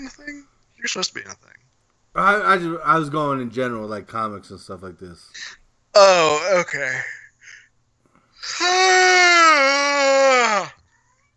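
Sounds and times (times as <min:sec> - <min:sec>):
speech: 0:00.0 - 0:07.2, 0:08.4 - 0:10.8
long loud voiced yawn: 0:08.4 - 0:10.8.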